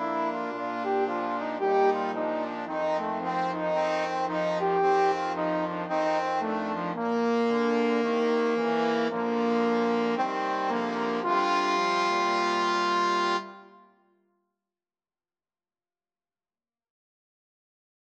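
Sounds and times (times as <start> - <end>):
trombone quartet playing: 0.0 - 13.5.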